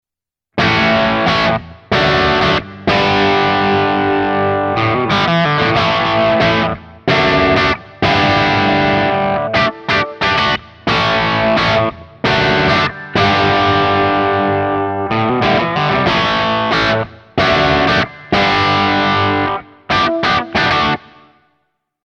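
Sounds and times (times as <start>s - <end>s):
Hagstrom Ultra Max bridge pickup crunch rhythm guitar: 0.6s - 21.5s.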